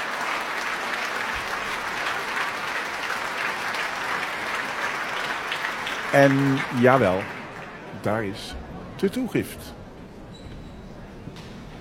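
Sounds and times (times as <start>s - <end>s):
concert audience applause: 0.0s - 8.5s
speech: 6.1s - 7.4s, 8.0s - 9.8s.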